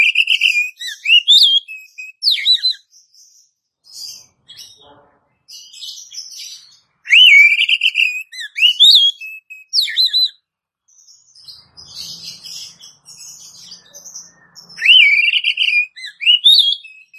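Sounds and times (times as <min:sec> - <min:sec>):
Oriental magpie-robin twittering and whistling: 0:00.0 - 0:04.8, 0:05.5 - 0:17.1.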